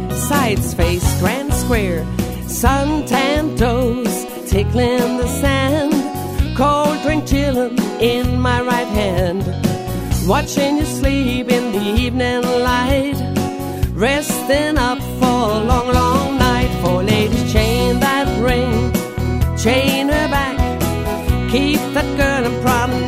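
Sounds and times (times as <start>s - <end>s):
vocals: 0.1s - 23.0s.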